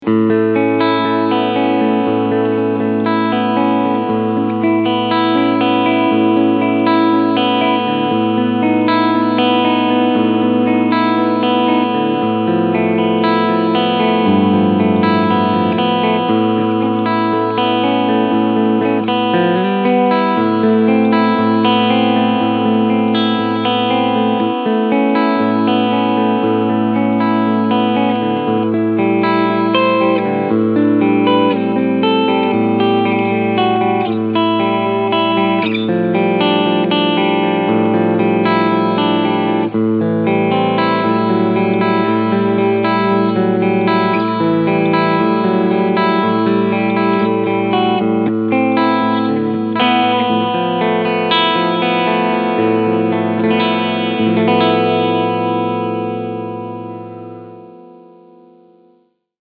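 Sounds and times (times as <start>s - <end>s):
Fender Player Series Jazzmaster clean sound: 0.0s - 59.4s.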